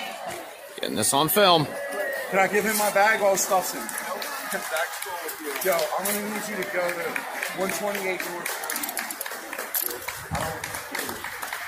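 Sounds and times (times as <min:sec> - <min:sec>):
busy crowd noise and overlapping voices: 0:00.0 - 0:11.6
speech: 0:00.8 - 0:08.6
group of people clapping: 0:02.3 - 0:11.6.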